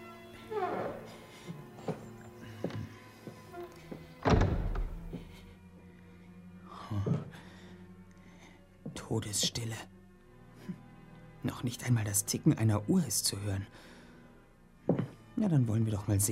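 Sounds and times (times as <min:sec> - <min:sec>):
heavy front door creaking open: 0:00.4 - 0:01.2, 0:03.5 - 0:05.3
speech: 0:09.2 - 0:10.0, 0:11.6 - 0:13.9, 0:15.4 - 0:16.3.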